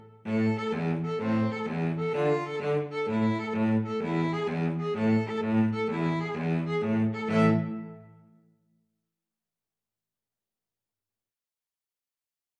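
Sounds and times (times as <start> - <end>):
two violins and cello playing a tarantella: 0.3 - 8.0.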